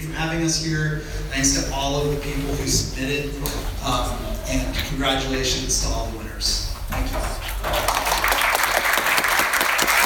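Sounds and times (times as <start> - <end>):
speech: 0.2 - 7.8
audience clapping at an award ceremony: 7.5 - 10.0.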